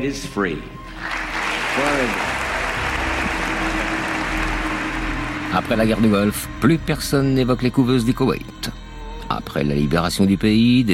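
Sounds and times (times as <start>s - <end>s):
speech: 0.0s - 1.1s, 1.8s - 2.4s, 5.5s - 8.8s, 9.4s - 10.9s
applause: 0.9s - 6.5s.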